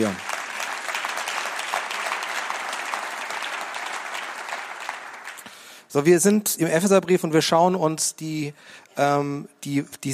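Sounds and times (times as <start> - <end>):
speech: 0.0 - 0.2, 6.0 - 10.1
audience applauding: 0.0 - 5.8.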